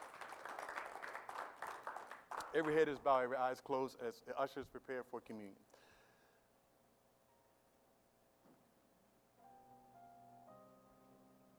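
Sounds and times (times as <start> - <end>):
audience clapping: 0.0 - 3.4
speech: 2.5 - 5.7.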